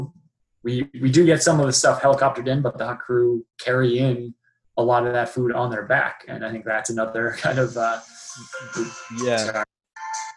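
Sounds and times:
speech: 0.0 - 9.7
mobile phone ringtone during a call: 8.3 - 10.3.

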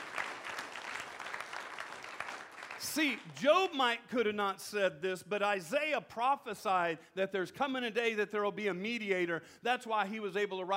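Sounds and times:
audience clapping: 0.0 - 3.5
speech: 2.8 - 10.7.

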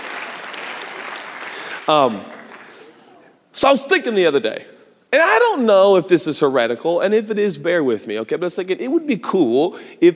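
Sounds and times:
audience clapping: 0.0 - 3.3
speech: 1.9 - 2.4, 3.6 - 10.1.

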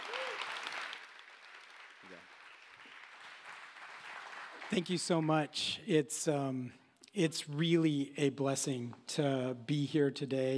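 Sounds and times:
audience clapping: 0.0 - 5.5
speech: 4.7 - 10.5.

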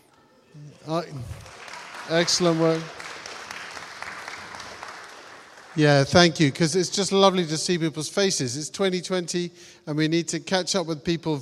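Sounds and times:
speech: 0.6 - 3.0, 5.8 - 11.4
group of people applauding: 0.6 - 7.8.

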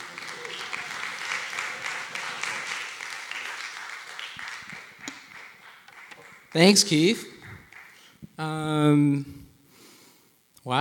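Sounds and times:
audience in Providencia clapping to welcome a speaker: 0.0 - 8.2
speech: 6.5 - 7.3, 8.4 - 9.4.

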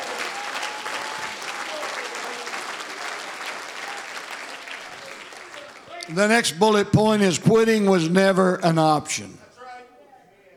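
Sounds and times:
audience hand clapping: 0.0 - 7.2
speech: 6.1 - 9.4.

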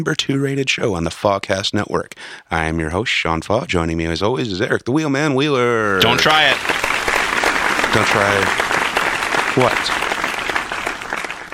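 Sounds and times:
speech: 0.0 - 6.9, 7.9 - 8.7, 9.6 - 10.0
hand clapping: 6.0 - 11.5.

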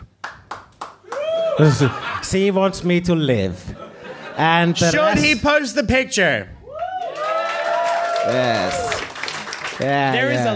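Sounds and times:
round of applause: 0.2 - 1.5, 7.0 - 10.5
laughter: 1.6 - 2.6, 3.7 - 5.4
speech: 1.6 - 3.8, 4.4 - 6.6, 8.2 - 8.8, 9.8 - 10.5.

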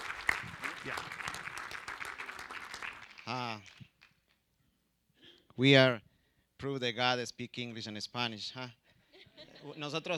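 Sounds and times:
church congregation applauding a couple: 0.0 - 4.4
speech: 0.8 - 1.2, 3.3 - 3.8, 5.6 - 6.0, 6.6 - 8.8, 9.4 - 10.1.

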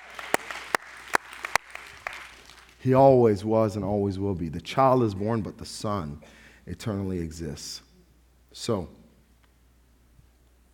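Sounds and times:
audience clapping: 0.0 - 2.8
speech: 2.8 - 7.9, 8.5 - 9.0.

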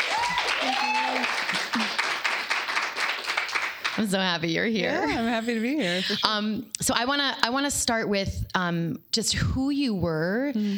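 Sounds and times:
cheers and voices: 0.0 - 1.5
audience clapping to welcome a guest: 0.0 - 4.4
speech: 4.0 - 10.7.

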